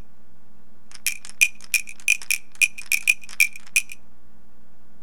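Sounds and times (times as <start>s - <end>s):
crickets chirping: 0.9s - 4.1s.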